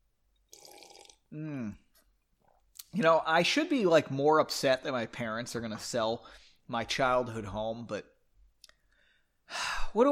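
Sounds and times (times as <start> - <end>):
person sipping a drink: 0.4 - 2.6
speech: 1.3 - 1.8, 2.9 - 8.1, 9.5 - 10.1.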